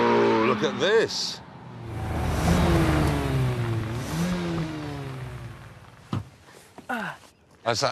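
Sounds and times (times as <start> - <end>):
speech: 0.6 - 2.0, 7.0 - 7.9
new car engine revving as it arrives: 1.7 - 6.1.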